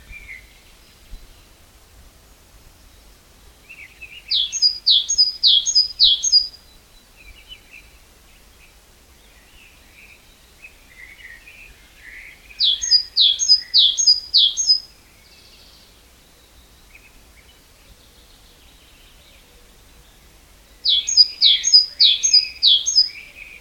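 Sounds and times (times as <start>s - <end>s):
great tit song: 4.2s - 6.6s, 12.6s - 14.8s, 20.8s - 23.5s.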